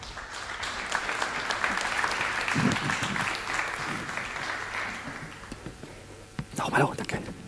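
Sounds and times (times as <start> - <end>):
audience applause: 0.0 - 5.8
speech: 6.7 - 7.0.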